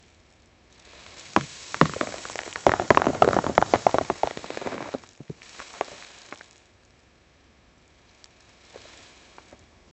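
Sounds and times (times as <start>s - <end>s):
rocks falling: 0.9s - 6.6s.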